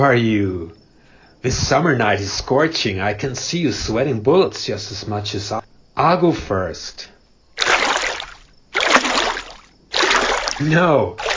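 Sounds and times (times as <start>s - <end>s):
speech: 0.0s - 0.8s, 1.4s - 7.2s, 10.6s - 11.3s
water splashing as someone gets into water: 7.6s - 11.3s.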